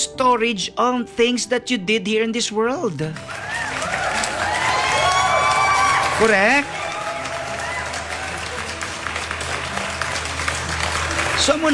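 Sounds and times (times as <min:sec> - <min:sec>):
speech: 0:00.0 - 0:03.4, 0:06.2 - 0:06.8
audience applause: 0:03.1 - 0:11.7.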